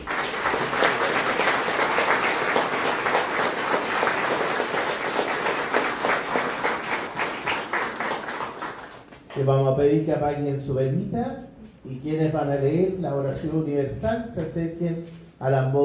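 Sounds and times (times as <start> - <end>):
audience applauding: 0.0 - 9.4
speech: 9.4 - 15.8.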